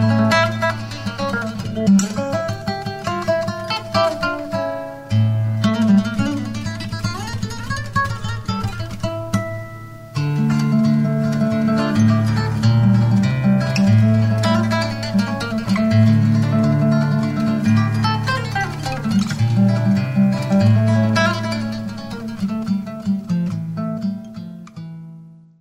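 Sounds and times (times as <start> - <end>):
classical guitar: 0.0 - 25.6.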